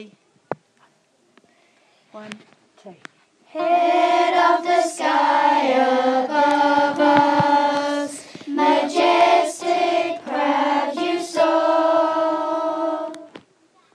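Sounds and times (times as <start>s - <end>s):
low choir singing: 3.5s - 13.4s.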